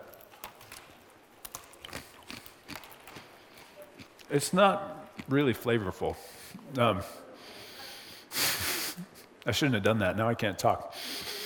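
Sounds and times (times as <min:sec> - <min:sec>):
breaking off and chewing a piece of matzah: 0:00.0 - 0:05.6
speech: 0:04.3 - 0:07.2, 0:09.5 - 0:11.1.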